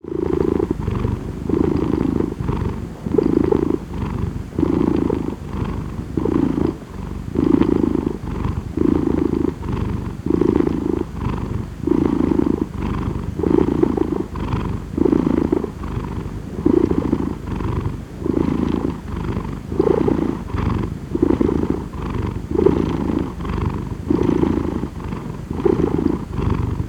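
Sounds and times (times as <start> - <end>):
cat purring: 0.0 - 26.8.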